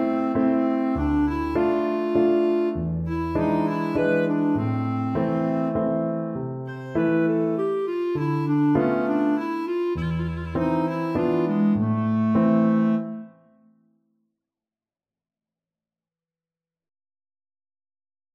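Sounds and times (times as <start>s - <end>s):
waltz music: 0.0s - 13.6s.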